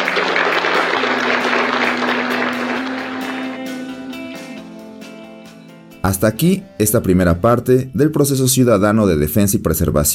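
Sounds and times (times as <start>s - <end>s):
audience applause: 0.0s - 4.1s
speech: 6.1s - 10.1s.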